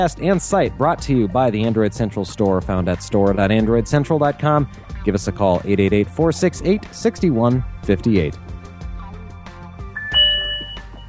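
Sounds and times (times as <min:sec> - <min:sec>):
speech: 0:00.0 - 0:08.5
phone notification ding: 0:10.0 - 0:11.0
soft tonal notes: 0:10.0 - 0:11.0.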